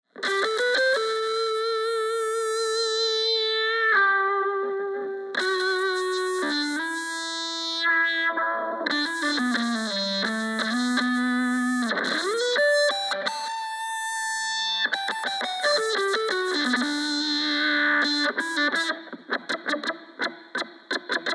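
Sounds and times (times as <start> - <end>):
high gain fuzz: 0.1 - 21.3.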